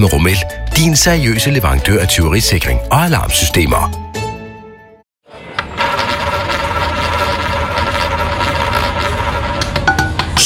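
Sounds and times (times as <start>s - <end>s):
speech: 0.0s - 4.0s
roulette wheel spinning: 5.6s - 10.2s.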